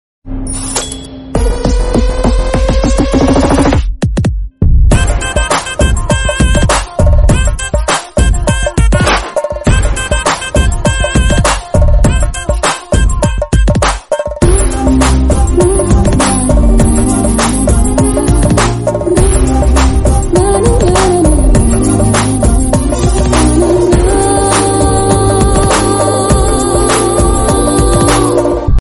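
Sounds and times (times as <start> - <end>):
background music: 0.4 - 28.7.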